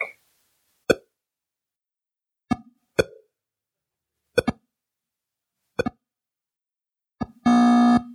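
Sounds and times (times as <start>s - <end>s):
buzzy electronic tone: 7.5s - 8.1s.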